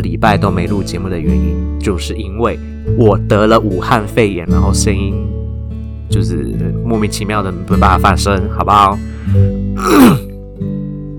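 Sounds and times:
speech: 0:00.0 - 0:05.4, 0:06.1 - 0:10.2
harsh throaty cough with groaning voiced tail: 0:09.8 - 0:10.3.

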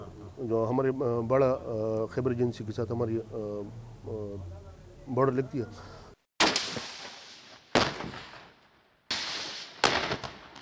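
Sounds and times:
speech: 0:00.4 - 0:06.0
heavy-weapon gunfire from live-fire training by Pakistani border police: 0:06.4 - 0:10.5.

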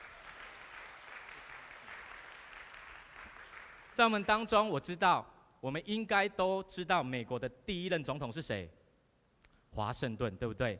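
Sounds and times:
audience applause: 0:00.0 - 0:04.0
speech: 0:04.0 - 0:08.8, 0:09.7 - 0:10.7.

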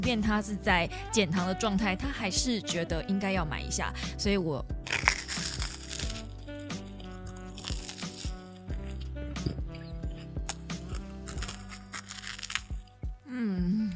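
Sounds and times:
speech: 0:00.0 - 0:04.8
crisp toast being bitten and chewed: 0:04.8 - 0:12.9.

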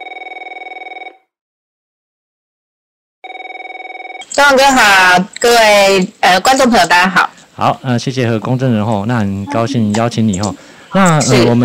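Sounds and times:
phone line ringback tone on an outgoing call: 0:00.0 - 0:01.3, 0:03.2 - 0:04.4
speech: 0:04.4 - 0:11.6.

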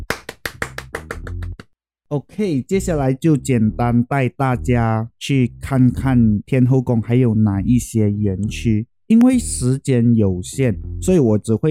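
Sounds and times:
applause: 0:00.0 - 0:01.6
speech: 0:02.1 - 0:11.6.

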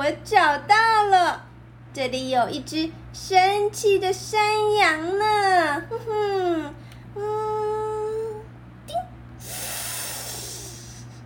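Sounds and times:
speech: 0:00.0 - 0:07.6
imitated blood-sucking slurp: 0:09.4 - 0:11.1.

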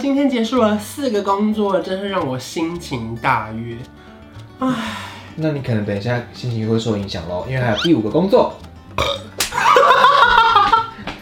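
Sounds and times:
speech: 0:00.0 - 0:04.0, 0:04.6 - 0:09.3
person burping: 0:09.0 - 0:09.4
laughter: 0:09.5 - 0:11.1.

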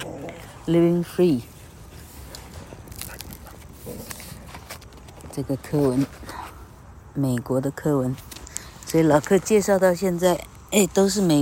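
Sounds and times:
speech: 0:00.7 - 0:01.5, 0:05.4 - 0:06.3, 0:07.2 - 0:08.3, 0:08.9 - 0:11.4
dogs: 0:01.5 - 0:04.5.

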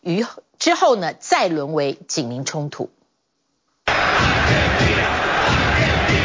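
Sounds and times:
speech: 0:00.0 - 0:03.0
large crowd shouting and chanting: 0:03.9 - 0:06.2.

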